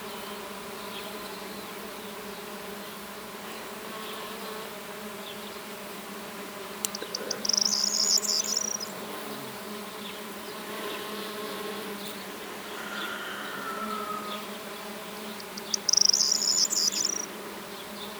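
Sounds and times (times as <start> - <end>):
bees buzzing: 0.1 - 18.1
high bird chirps: 6.9 - 8.9, 15.3 - 17.3.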